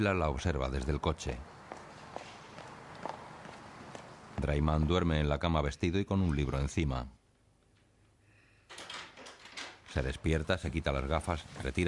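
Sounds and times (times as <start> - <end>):
speech: 0.0 - 1.6, 4.4 - 7.2, 10.0 - 11.8
noise: 0.0 - 11.8
woman's footsteps on a sidewalk: 0.8 - 4.6.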